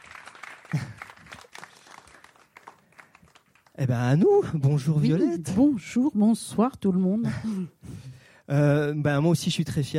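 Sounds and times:
small group applauding: 0:00.0 - 0:04.2
speech: 0:00.7 - 0:00.9, 0:03.8 - 0:07.8, 0:08.5 - 0:09.9.

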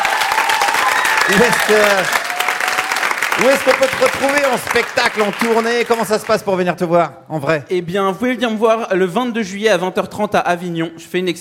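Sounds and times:
audience applause: 0:00.0 - 0:06.4
speech: 0:01.3 - 0:02.2, 0:03.4 - 0:11.3.

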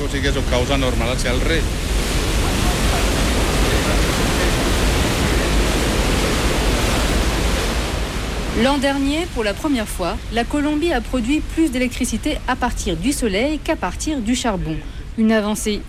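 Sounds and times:
water rushing into hydroelectric turbine outflow basin: 0:00.0 - 0:09.5
speech: 0:00.1 - 0:01.9, 0:08.6 - 0:15.8.

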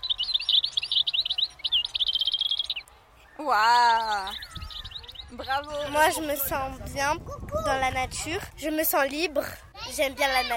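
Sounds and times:
bird chirping in a tree: 0:00.0 - 0:06.6
speech: 0:03.4 - 0:04.6, 0:05.3 - 0:10.5.

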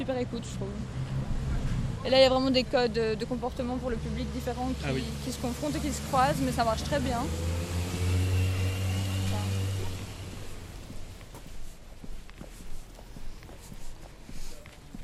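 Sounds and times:
speech: 0:00.0 - 0:01.2, 0:02.0 - 0:07.6
uneven noise: 0:00.0 - 0:15.0
train passing near Gare du Midi station: 0:02.8 - 0:11.3.

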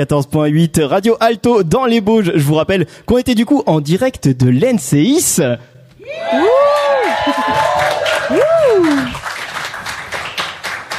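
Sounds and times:
speech: 0:00.0 - 0:09.2
live radio studio audience whooping in the Bauges: 0:06.0 - 0:09.8
live radio studio audience clapping in the Bauges: 0:06.6 - 0:10.9.

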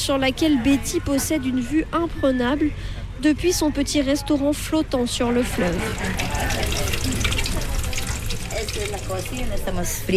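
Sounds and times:
speech: 0:00.0 - 0:07.0, 0:08.8 - 0:10.1
faint murmuring voices: 0:00.0 - 0:10.1
eggs frying in a pan: 0:05.5 - 0:10.1.

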